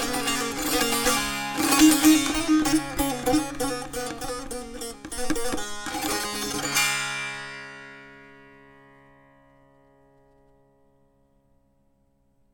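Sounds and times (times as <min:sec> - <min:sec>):
tanbur practice: 0:00.0 - 0:08.4.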